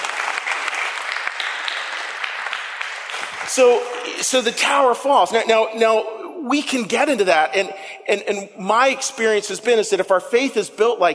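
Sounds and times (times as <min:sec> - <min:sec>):
audience round of applause: 0:00.0 - 0:04.2
speech: 0:03.5 - 0:11.1.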